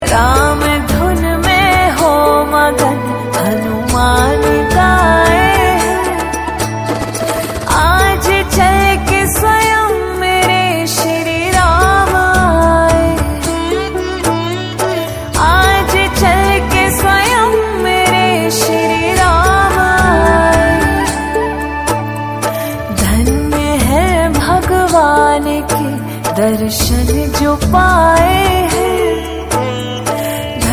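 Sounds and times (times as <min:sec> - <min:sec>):
devotional bhajan song: 0:00.0 - 0:30.7.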